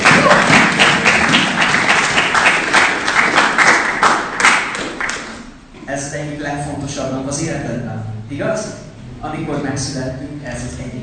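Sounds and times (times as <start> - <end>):
crowd applause: 0.0 - 5.4
speech: 6.6 - 11.0.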